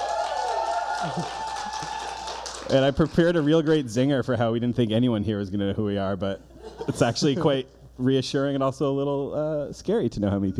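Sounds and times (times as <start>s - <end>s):
audience applauding: 0.0s - 3.8s
speech: 1.0s - 1.5s, 2.7s - 10.5s.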